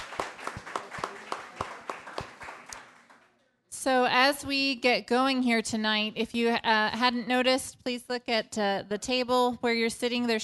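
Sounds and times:
audience applause for panel: 0:00.0 - 0:03.3
speech: 0:03.8 - 0:10.4.

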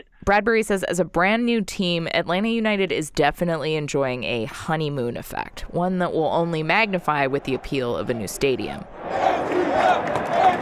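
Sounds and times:
speech: 0:00.2 - 0:10.6
sold-out crowd cheering at Atlanta United soccer game, Bobby Dodd Stadium: 0:06.7 - 0:10.6
people shouting in soccer crowd: 0:07.0 - 0:10.6.

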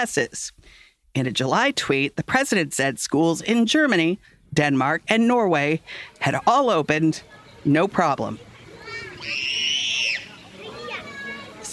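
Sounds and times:
speech: 0:00.0 - 0:08.5
children's voices and playground chatter: 0:07.0 - 0:11.7
child screaming on a playground: 0:08.8 - 0:11.7.

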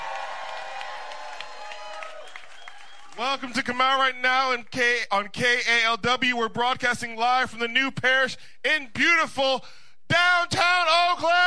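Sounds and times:
audience clapping at a live show in an Oakland venue: 0:00.0 - 0:03.4
speech: 0:03.2 - 0:11.4.

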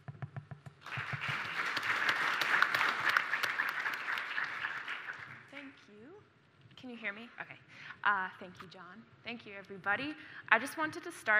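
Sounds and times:
audience applause welcoming a speaker at a talk on fossil fuel divestment: 0:00.8 - 0:05.7
speech: 0:06.8 - 0:11.3.

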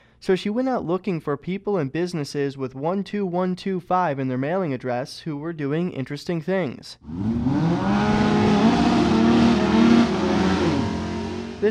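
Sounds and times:
speech: 0:00.2 - 0:08.2
race car engines roaring on a dirt track: 0:07.0 - 0:11.6.

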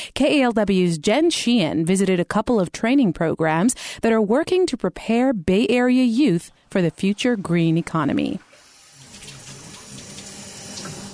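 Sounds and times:
speech: 0:00.1 - 0:08.5
water running from a sink faucet during a flow-rate test: 0:08.1 - 0:11.1.

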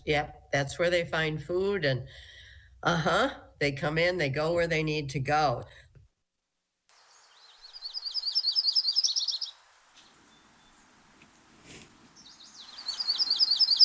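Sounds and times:
speech: 0:00.0 - 0:05.8
yellow-rumped warbler calls: 0:07.0 - 0:13.8.

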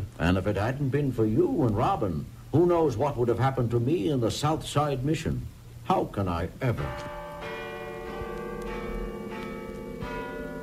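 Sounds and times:
speech: 0:00.2 - 0:07.2
church bells ringing midnight: 0:06.7 - 0:10.6.

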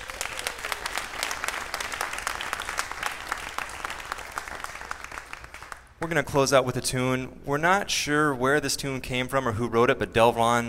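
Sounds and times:
audience applause: 0:00.0 - 0:06.0
speech: 0:06.1 - 0:10.6.

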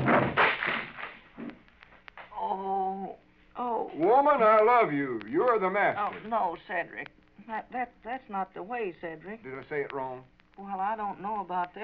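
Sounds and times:
wooden chair breaking to pieces: 0:00.0 - 0:01.6
speech: 0:03.9 - 0:11.8.

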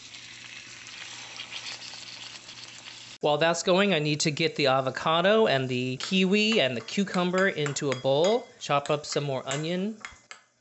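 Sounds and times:
pork chop sizzling on a hot griddle: 0:00.0 - 0:03.2
speech: 0:03.2 - 0:10.1.

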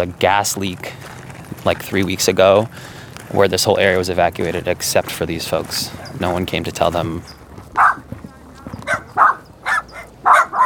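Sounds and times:
speech: 0:00.0 - 0:07.4
low rumbling background: 0:00.0 - 0:10.3
small dogs yapping: 0:07.3 - 0:10.6.

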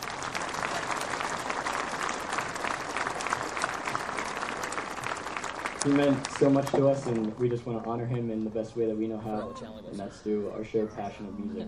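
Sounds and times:
audience applause: 0:00.0 - 0:08.5
speech: 0:05.8 - 0:11.6.

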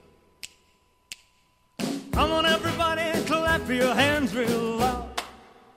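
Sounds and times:
finger snapping: 0:00.4 - 0:01.3
speech: 0:02.2 - 0:02.8, 0:03.6 - 0:05.1.

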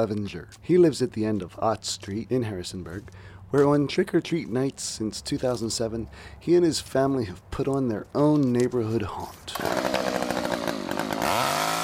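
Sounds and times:
speech: 0:00.0 - 0:10.2
chainsaw revving at a Halloween neighborhood haunt: 0:09.5 - 0:11.8.

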